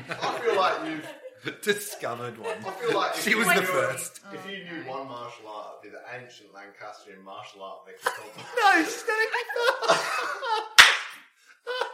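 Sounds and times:
laughter: 0.0s - 4.2s, 8.0s - 10.8s, 11.6s - 11.9s
speech: 0.6s - 10.8s
single sharp hand clap: 10.8s - 11.2s.

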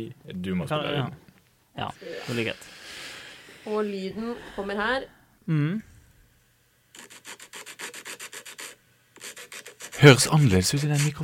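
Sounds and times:
speech: 0.0s - 1.2s, 1.8s - 2.8s, 3.6s - 5.9s, 10.0s - 11.2s
nail file rasping on a nail: 6.9s - 11.2s.

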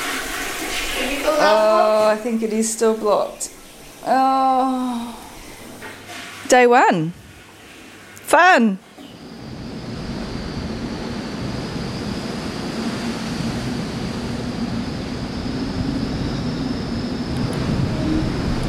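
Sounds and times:
speech: 1.2s - 5.2s, 6.5s - 7.2s, 8.3s - 8.8s
Southern Ocean wind on ship's bow: 9.3s - 18.6s.

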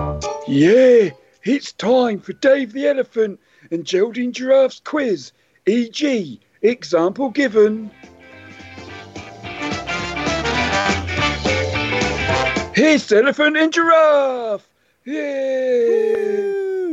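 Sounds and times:
commissioned podcast quiz theme tune: 0.0s - 1.3s, 7.8s - 13.1s
speech: 0.5s - 8.1s, 12.8s - 16.9s.

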